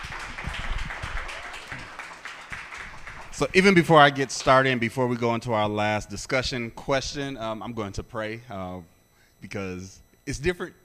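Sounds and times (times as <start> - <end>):
round of applause: 0.0 - 4.6
speech: 3.4 - 10.8.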